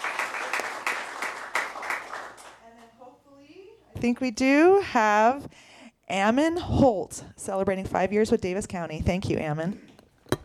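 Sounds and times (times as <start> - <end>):
audience clapping at a county employee service-award event: 0.0 - 2.9
speech: 4.0 - 9.9.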